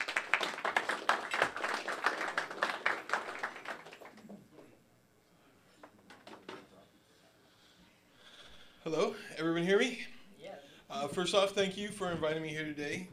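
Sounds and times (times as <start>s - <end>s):
audience applause: 0.0s - 4.3s
speech: 8.9s - 10.1s, 11.0s - 13.1s.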